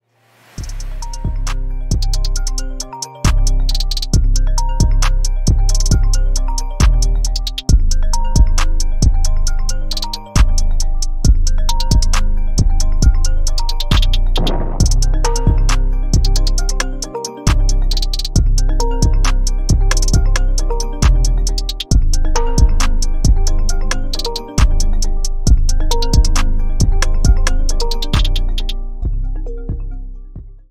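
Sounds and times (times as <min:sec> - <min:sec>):
trap remix of iPhone X ringtone: 0:00.6 - 0:30.7.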